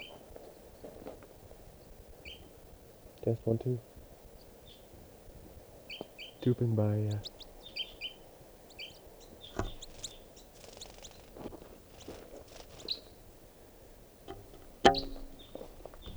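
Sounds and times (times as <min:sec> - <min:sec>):
speech: 0:03.2 - 0:03.9, 0:06.4 - 0:07.4
bird calls from a circling flock: 0:05.8 - 0:13.3, 0:14.3 - 0:16.1.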